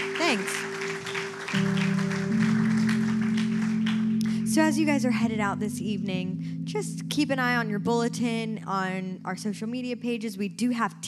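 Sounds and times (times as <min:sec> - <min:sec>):
crowd clapping: 0:00.0 - 0:05.0
sustained organ-like chords: 0:00.0 - 0:08.8
speech: 0:00.3 - 0:00.7, 0:04.6 - 0:11.0.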